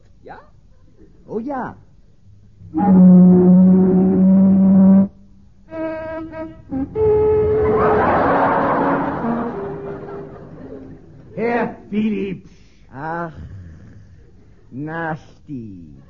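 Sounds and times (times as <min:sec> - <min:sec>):
speech: 0:00.3 - 0:01.9, 0:02.7 - 0:03.9, 0:11.4 - 0:13.5, 0:14.7 - 0:16.0
boat siren horn: 0:02.7 - 0:10.4
rough rushing roar: 0:06.9 - 0:10.9
laughter: 0:07.4 - 0:11.9.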